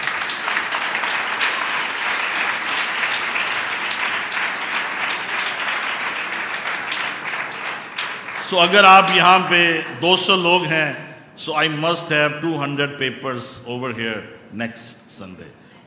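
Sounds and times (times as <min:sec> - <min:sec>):
church congregation applause: 0:00.0 - 0:10.6
speech: 0:08.5 - 0:15.8.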